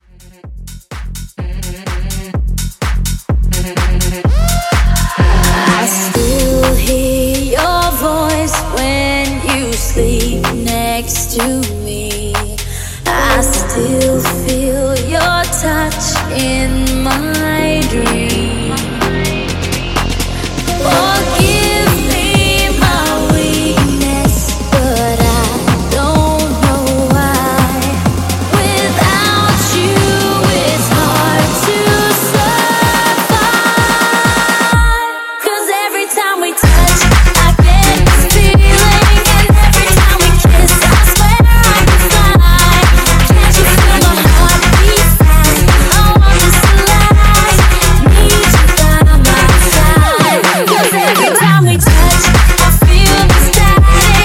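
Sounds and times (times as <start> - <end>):
music mashup: 0.1 - 54.2.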